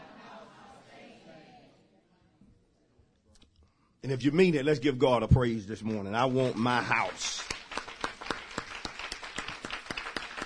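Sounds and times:
speech: 4.0s - 7.5s
congregation clapping hands in a church worship service: 6.0s - 10.4s.

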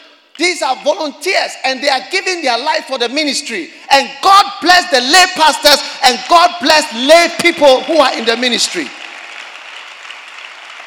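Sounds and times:
speech: 0.4s - 9.0s
audience clapping: 7.1s - 10.8s.

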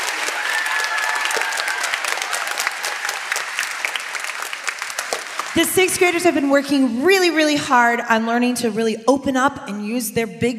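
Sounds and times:
round of applause: 0.0s - 6.4s
speech: 5.6s - 10.5s.

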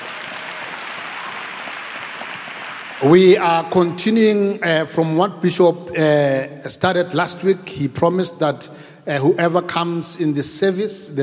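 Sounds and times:
audience applause: 0.0s - 3.2s
speech: 3.0s - 11.2s.

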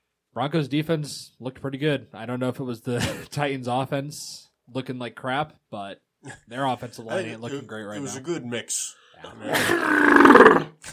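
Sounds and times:
speech: 0.4s - 10.8s
loud sneeze: 9.4s - 10.8s.

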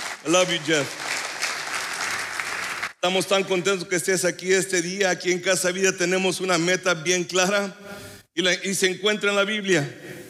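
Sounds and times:
audience applause: 0.0s - 3.0s
speech: 0.2s - 1.1s, 3.0s - 10.1s.

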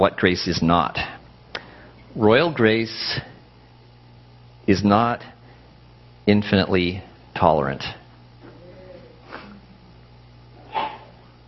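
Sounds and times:
speech: 0.0s - 1.1s, 2.1s - 3.3s, 4.7s - 5.4s, 6.3s - 8.0s
low steady hum: 0.0s - 11.4s
sneeze: 10.6s - 11.2s.

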